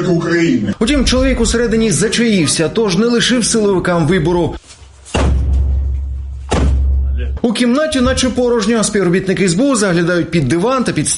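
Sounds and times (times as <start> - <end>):
speech: 0.0 - 4.8, 7.6 - 11.1
SBU counterintelligence officers banging on an apartment door in Zaporizhzhia: 5.2 - 7.0.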